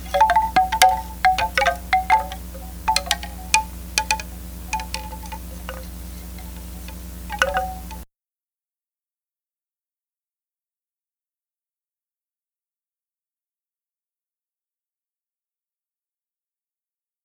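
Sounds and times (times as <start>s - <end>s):
chimes: 0.0s - 8.0s.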